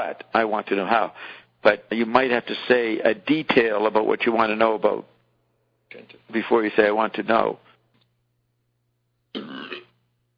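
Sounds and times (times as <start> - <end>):
speech: 0.0 - 5.1, 5.9 - 7.7, 9.3 - 9.8
burp: 9.3 - 10.0.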